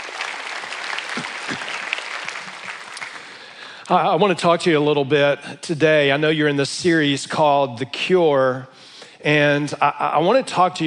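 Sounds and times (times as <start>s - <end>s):
audience applause: 0.0s - 3.8s
speech: 3.9s - 10.8s.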